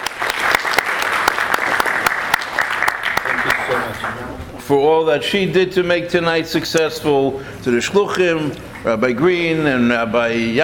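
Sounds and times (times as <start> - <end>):
audience applause: 0.0 - 4.4
speech: 3.8 - 10.6.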